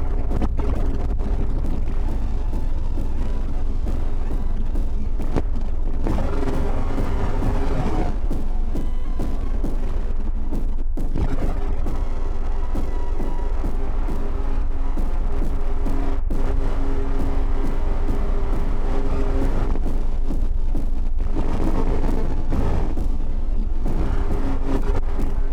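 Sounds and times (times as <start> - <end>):
noise session: 0.0 - 25.5.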